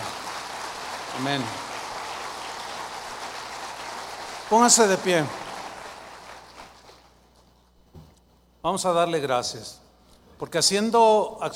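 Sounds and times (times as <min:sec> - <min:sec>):
audience applause: 0:00.0 - 0:07.2
speech: 0:01.2 - 0:01.7, 0:04.5 - 0:05.4, 0:08.6 - 0:09.8, 0:10.4 - 0:11.5.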